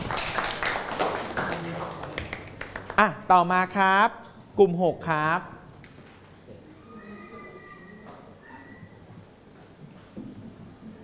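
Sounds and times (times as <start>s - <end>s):
classmates clapping: 0.0s - 3.2s
speech: 3.0s - 5.6s.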